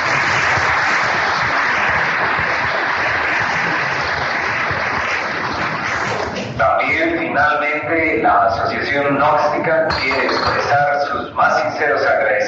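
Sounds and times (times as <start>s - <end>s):
applause from an audience: 0.0s - 6.6s
speech: 7.9s - 12.4s.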